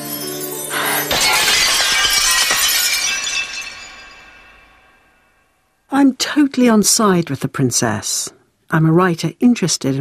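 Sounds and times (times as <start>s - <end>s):
glass shattering: 0.0s - 5.6s
speech: 6.0s - 9.9s.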